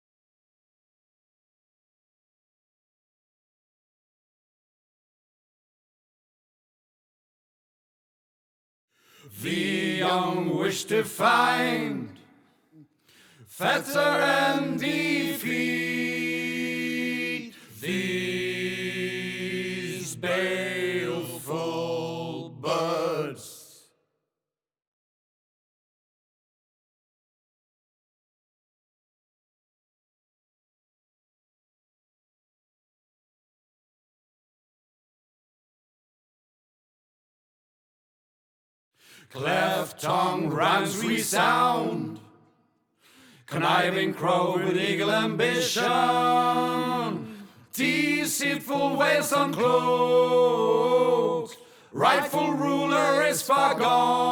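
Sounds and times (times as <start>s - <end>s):
chorus singing in English: 9.3s - 12.4s, 13.5s - 23.8s, 39.3s - 42.4s, 43.4s - 54.3s.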